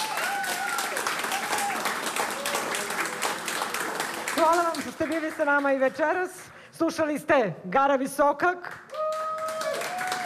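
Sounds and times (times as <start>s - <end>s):
audience applause after a concert: 0.0s - 5.8s, 8.9s - 10.2s
speech: 4.4s - 8.8s.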